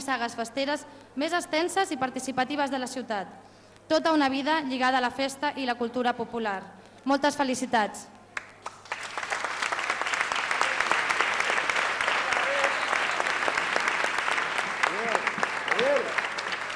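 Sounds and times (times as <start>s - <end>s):
speech: 0.1s - 8.2s
audience applause: 8.4s - 16.7s.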